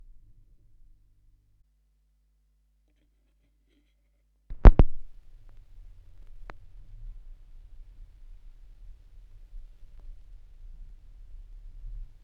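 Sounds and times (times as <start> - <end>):
vinyl record noise: 4.5 - 12.2.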